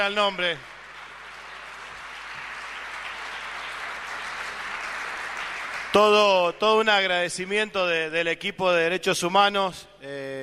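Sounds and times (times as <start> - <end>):
speech: 0.0 - 0.7, 6.0 - 10.4
crowd applause: 0.0 - 6.5.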